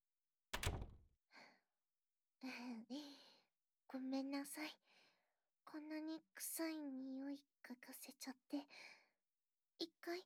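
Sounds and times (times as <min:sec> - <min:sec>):
door shutting: 0:00.6 - 0:01.0
speech: 0:02.4 - 0:03.3, 0:03.9 - 0:05.0, 0:05.7 - 0:09.0, 0:09.8 - 0:10.2.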